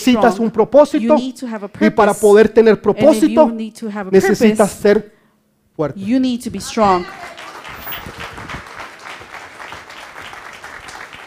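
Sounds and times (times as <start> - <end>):
speech: 0.0 - 5.2, 5.8 - 7.4
audience applause: 7.0 - 11.2.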